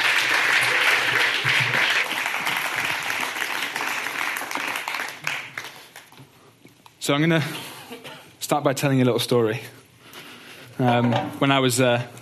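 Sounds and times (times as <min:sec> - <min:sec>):
audience clapping: 0:00.0 - 0:06.4
speech: 0:07.1 - 0:07.7, 0:08.5 - 0:09.8, 0:10.8 - 0:12.1.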